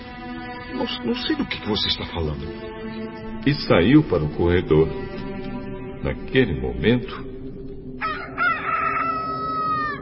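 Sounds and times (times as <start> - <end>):
speech: 0.8 - 7.3
rooster crowing: 8.0 - 10.0.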